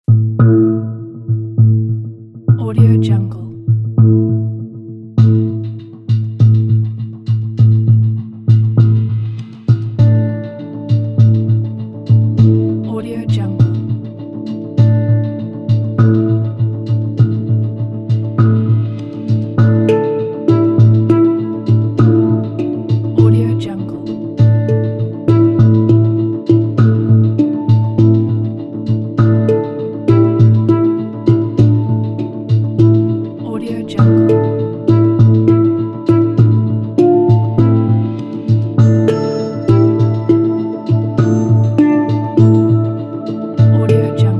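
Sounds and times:
mysterious tense hang drum ambience: 0.1s - 44.3s.

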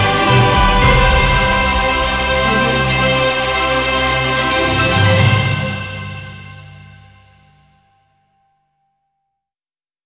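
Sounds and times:
Christmas opener music: 0.0s - 7.1s.

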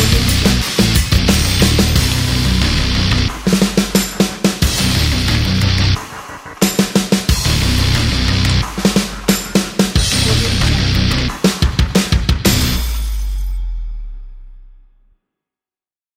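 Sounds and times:
powerful commercial metal music: 0.0s - 14.1s.

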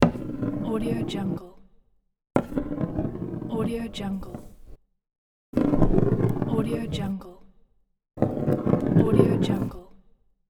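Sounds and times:
ball rolling: 0.0s - 1.5s, 2.4s - 4.8s, 5.6s - 7.3s, 8.2s - 9.8s.

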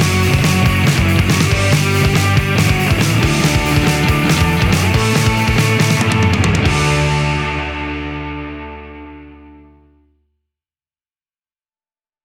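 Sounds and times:
catchy punk jam: 0.0s - 9.4s.

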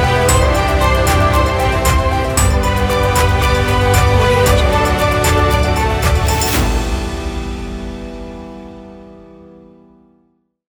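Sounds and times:
epic cinematic motivational music: 0.0s - 9.6s.

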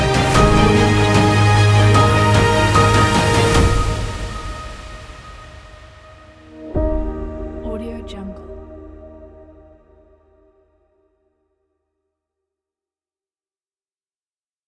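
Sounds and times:
cinematic trailer music: 0.0s - 10.8s.

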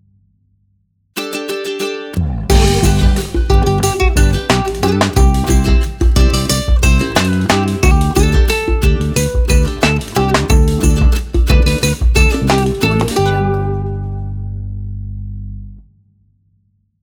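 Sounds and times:
happy summer ukulele music: 1.2s - 14.6s.

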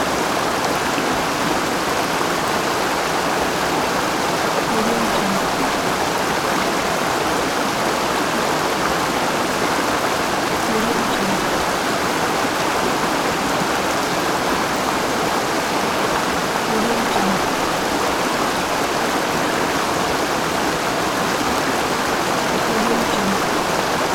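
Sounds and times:
waterfall: 0.0s - 24.1s.

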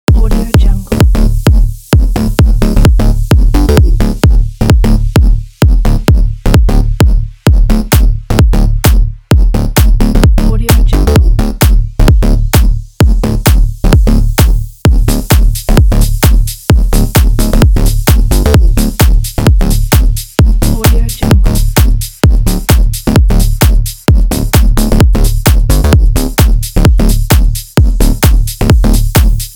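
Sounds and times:
electro house loop: 0.0s - 29.5s.

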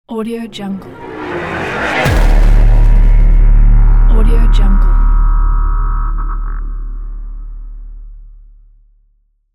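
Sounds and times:
high-tech logo sting: 0.8s - 7.9s.

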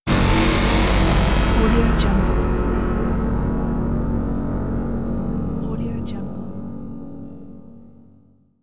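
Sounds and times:
sci-fi impact: 0.1s - 7.6s.

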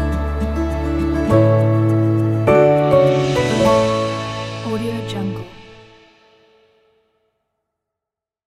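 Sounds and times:
happy Easter logo jingle: 0.1s - 6.2s.

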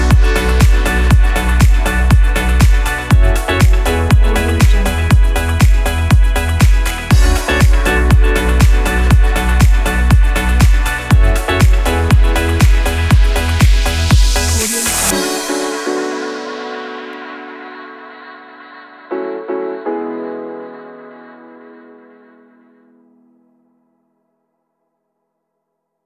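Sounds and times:
deep house music: 0.0s - 17.3s.

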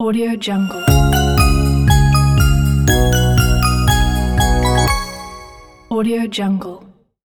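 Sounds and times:
Christmas logo jingle: 0.4s - 6.0s.

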